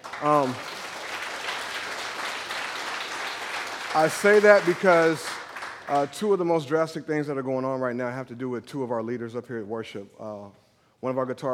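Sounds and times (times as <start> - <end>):
audience applause: 0.0 - 6.2
speech: 0.2 - 0.8, 3.9 - 5.3, 5.9 - 11.5.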